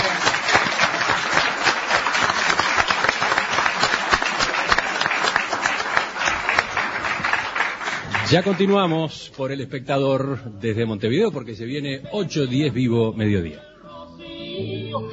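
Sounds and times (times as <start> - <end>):
applause from a small group: 0.0 - 9.2
speech: 8.3 - 13.7.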